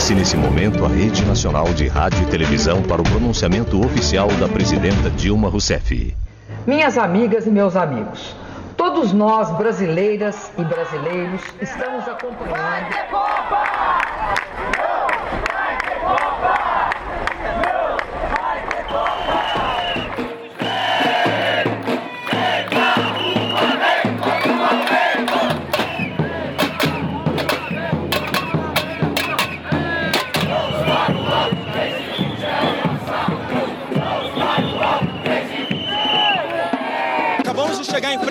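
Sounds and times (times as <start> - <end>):
speech: 0.1 - 14.0
large protest crowd chanting and shouting in the street: 10.5 - 38.2
sharp claps or bangs: 21.7 - 30.9.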